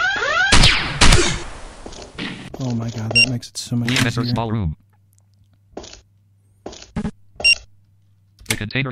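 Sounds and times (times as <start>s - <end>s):
video game pistol shots: 0.2s - 2.5s
speech: 2.6s - 4.8s, 8.6s - 8.9s.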